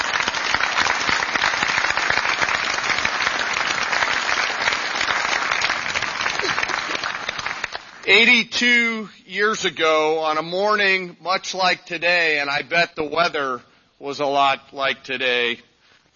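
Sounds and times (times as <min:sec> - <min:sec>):
audience applause for veterans: 0:00.0 - 0:08.0
speech: 0:08.1 - 0:16.1.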